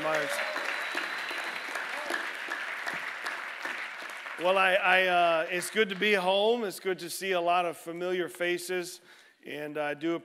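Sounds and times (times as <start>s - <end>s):
church congregation at Pacific Baptist Church in Long Beach applauding: 0.0s - 6.6s
speech: 4.4s - 10.2s.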